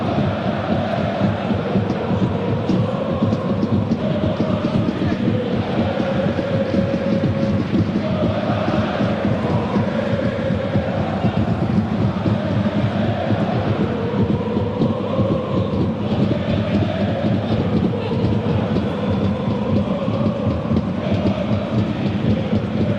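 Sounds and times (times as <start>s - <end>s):
football ambience: 0.0s - 22.9s.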